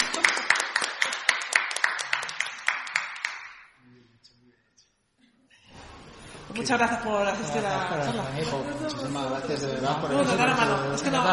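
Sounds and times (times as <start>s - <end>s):
audience applause: 0.0s - 3.6s
speech: 6.5s - 11.3s.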